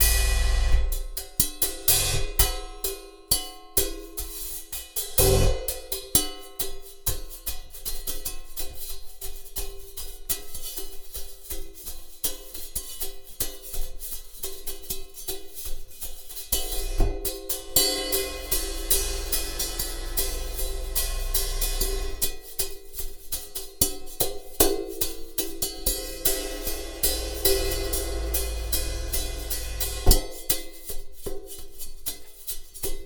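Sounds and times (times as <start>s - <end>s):
cymbal: 0.0s - 6.0s, 16.6s - 23.4s, 24.7s - 31.3s.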